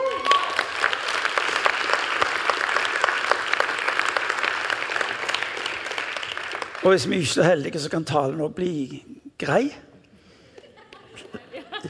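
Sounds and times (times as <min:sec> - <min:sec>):
audience applause: 0:00.0 - 0:07.4
speech: 0:06.8 - 0:09.9
laughter: 0:10.6 - 0:11.8.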